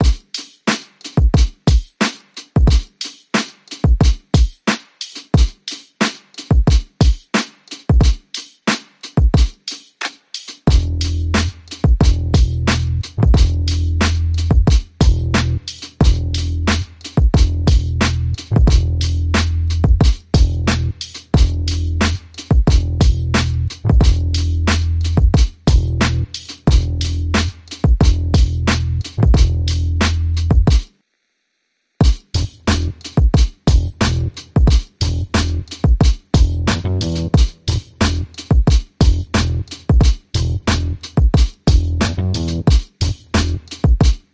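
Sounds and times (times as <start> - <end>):
drums: 0.0 - 31.0, 32.0 - 44.3
bass: 10.7 - 30.7, 32.4 - 33.1, 33.7 - 35.8, 36.4 - 38.4, 39.0 - 41.1, 41.7 - 43.8.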